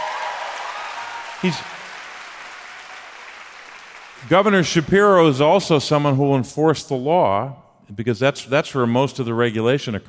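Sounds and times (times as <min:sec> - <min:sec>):
audience clapping: 0:00.0 - 0:05.4
speech: 0:01.4 - 0:01.8, 0:04.2 - 0:10.0.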